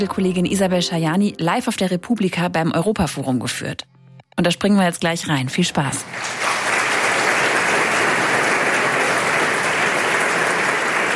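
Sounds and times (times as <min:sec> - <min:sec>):
speech: 0:00.0 - 0:06.6
live audience applauding: 0:06.0 - 0:11.1.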